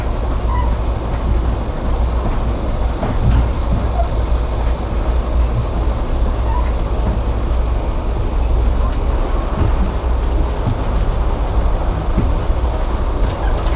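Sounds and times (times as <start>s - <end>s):
train interior at terminal going and stopping: 0.0s - 13.7s.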